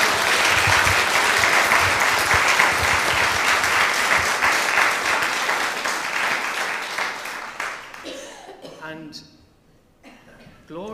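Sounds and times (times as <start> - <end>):
audience applause: 0.0 - 8.2.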